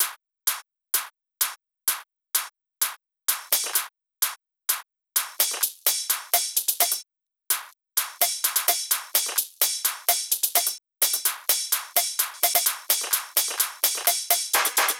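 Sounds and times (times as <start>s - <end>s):
drum loop: 0.0s - 1.1s, 5.2s - 14.9s
percussion: 0.0s - 14.9s
hi-hat: 5.2s - 7.0s, 8.0s - 14.9s.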